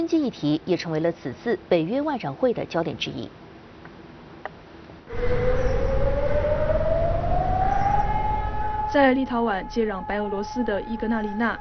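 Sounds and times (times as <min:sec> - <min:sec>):
speech: 0:00.0 - 0:03.4, 0:08.9 - 0:11.5
air raid siren wailing: 0:05.1 - 0:11.5
loud rumbling wash of noise: 0:05.1 - 0:11.5.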